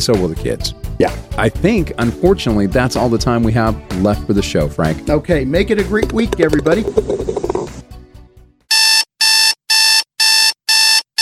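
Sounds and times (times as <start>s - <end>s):
speech: 0.0s - 7.4s
alarm clock ringing: 8.7s - 11.2s.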